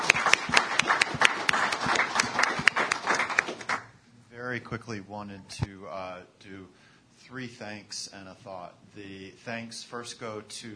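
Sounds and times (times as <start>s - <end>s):
audience applause: 0.0s - 3.9s
speech: 4.7s - 10.7s.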